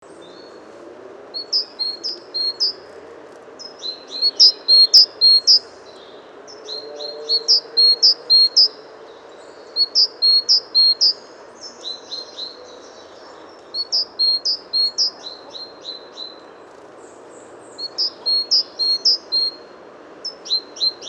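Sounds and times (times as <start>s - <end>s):
background hiss: 0.1s - 21.0s
great tit calling: 1.4s - 2.8s, 3.6s - 5.8s, 6.6s - 8.8s, 9.6s - 16.5s, 17.8s - 19.6s.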